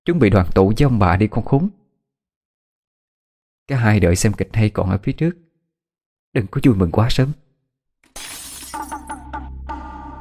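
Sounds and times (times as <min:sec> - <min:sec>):
speech: 0:00.0 - 0:01.8, 0:03.7 - 0:05.4, 0:06.3 - 0:07.4
glass bottle smashing against the corner of a wall: 0:08.1 - 0:09.2
glass shards tinkling: 0:08.2 - 0:09.2.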